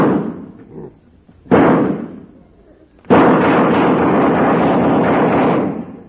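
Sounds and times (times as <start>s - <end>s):
gunshot blasting through a wall: 0.0s - 0.5s, 1.5s - 2.3s, 3.1s - 6.0s.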